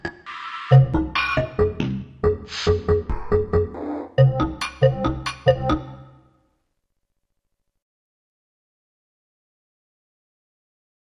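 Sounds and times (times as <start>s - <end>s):
rhythm: 0.0s - 6.2s.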